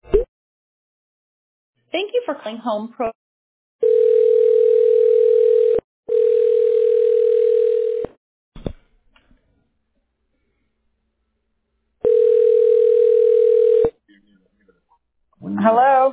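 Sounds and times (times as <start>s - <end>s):
speech: 1.9s - 3.2s
telephone dial tone after dropped call: 3.8s - 8.2s, 12.0s - 13.9s.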